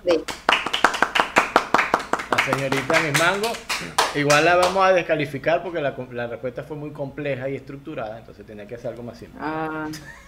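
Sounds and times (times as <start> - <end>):
clapping applause: 0.2 - 4.9
speech: 2.5 - 10.2.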